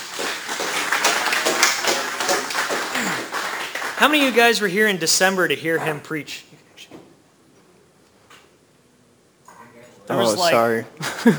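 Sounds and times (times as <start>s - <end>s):
audience applause: 0.0s - 4.6s
speech: 4.0s - 6.6s, 10.2s - 11.3s.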